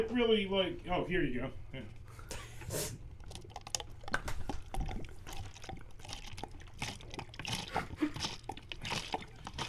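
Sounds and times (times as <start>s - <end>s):
speech: 0.0s - 3.0s
liquid pouring from a bottle to refill a drink: 3.0s - 9.6s.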